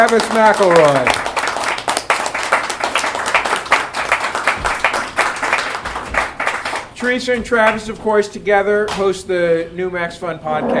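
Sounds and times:
speech: 0:00.0 - 0:01.3, 0:07.0 - 0:10.7
audience applause: 0:00.0 - 0:07.0.

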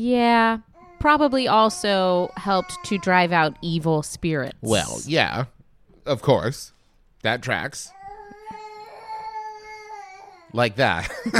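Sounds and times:
speech: 0:00.0 - 0:08.0, 0:10.5 - 0:11.3
baby crying: 0:00.8 - 0:03.8, 0:07.9 - 0:10.6.

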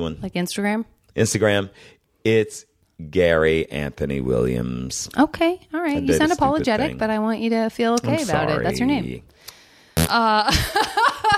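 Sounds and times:
speech: 0:00.0 - 0:11.0
fart sound: 0:10.0 - 0:10.2.

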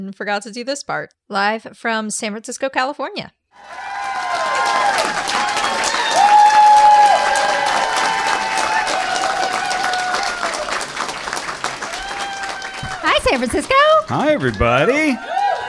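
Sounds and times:
speech: 0:00.0 - 0:03.9, 0:13.2 - 0:15.3
live audience applause and cheering: 0:03.6 - 0:15.6.

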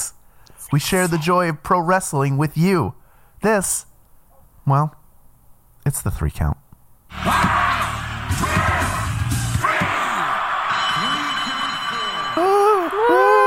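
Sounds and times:
speech: 0:00.7 - 0:03.9, 0:04.7 - 0:05.0, 0:05.9 - 0:06.6
wrestling crowd cheering and yelling: 0:07.1 - 0:13.4.

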